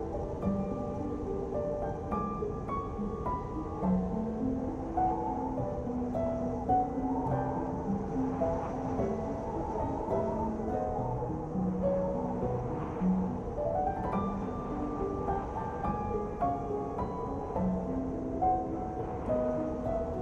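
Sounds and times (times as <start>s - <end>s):
soft music: 0.0s - 20.2s
winter blizzard roaring: 0.0s - 20.2s.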